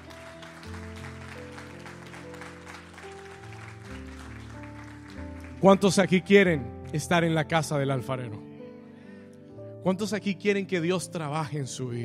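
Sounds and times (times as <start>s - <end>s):
audience applause: 0.0s - 6.0s
speech: 5.6s - 8.5s, 9.8s - 12.0s.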